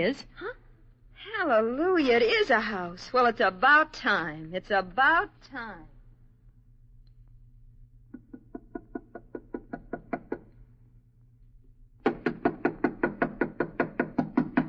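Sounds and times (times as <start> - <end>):
speech: 0.0 - 0.5, 1.4 - 5.9
knocking on a door: 8.2 - 10.4, 12.0 - 14.6.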